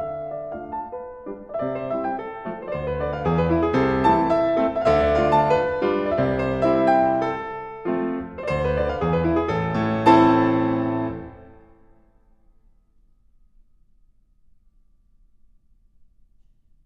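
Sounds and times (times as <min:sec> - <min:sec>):
piano and string orchestra: 0:00.0 - 0:11.6.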